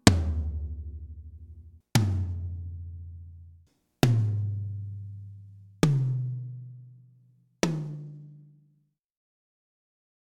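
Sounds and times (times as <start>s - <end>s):
tom drums: 0.0s - 2.6s, 4.0s - 4.8s, 5.8s - 6.4s, 7.6s - 8.1s.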